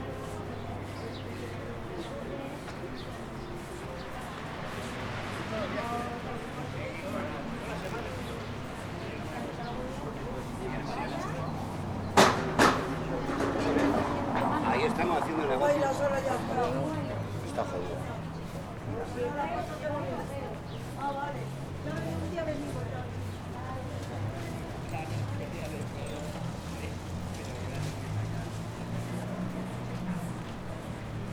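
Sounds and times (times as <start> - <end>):
murmur of many voices in Puerta del Sol: 0.0 - 31.3.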